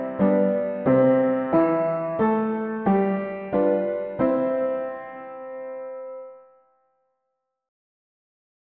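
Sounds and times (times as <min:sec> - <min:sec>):
mono piano playing hymns: 0:00.0 - 0:06.6.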